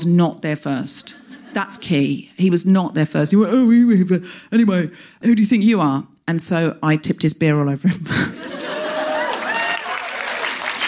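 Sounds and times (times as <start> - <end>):
speech: 0.0 - 8.6
laughter: 8.1 - 9.9
audience applause: 8.5 - 10.8
faint whoops and cheers from the audience: 8.7 - 10.5.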